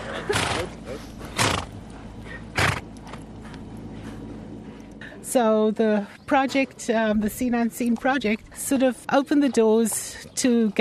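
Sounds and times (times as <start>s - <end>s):
racing horses galloping past: 0.0s - 5.0s
speech: 5.3s - 10.7s.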